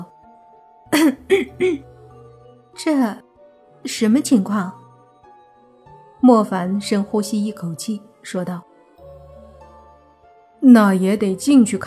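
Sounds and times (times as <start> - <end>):
speech: 0.9 - 1.9, 2.8 - 3.2, 3.8 - 4.8, 6.2 - 8.7, 10.6 - 11.8
awkward cough: 1.0 - 1.8.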